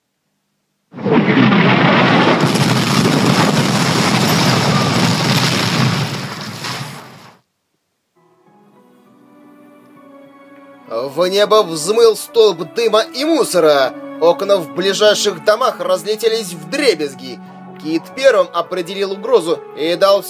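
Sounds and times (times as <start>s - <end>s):
artillery shell flying over and exploding: 0.9s - 7.4s
speech: 11.2s - 20.2s.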